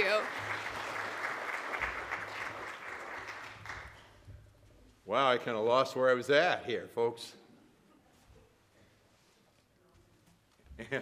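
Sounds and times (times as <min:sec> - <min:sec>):
audience applause: 0:00.0 - 0:04.2
speech: 0:05.1 - 0:07.4, 0:10.8 - 0:11.0.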